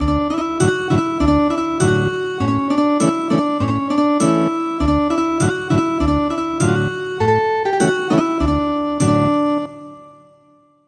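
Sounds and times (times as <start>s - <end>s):
ethnic guitar music: 0.0s - 9.8s.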